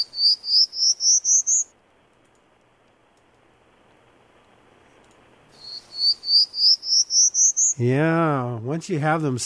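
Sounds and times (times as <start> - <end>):
Prairie Warbler song: 0.0 - 1.7, 5.5 - 7.9
speech: 7.8 - 9.4.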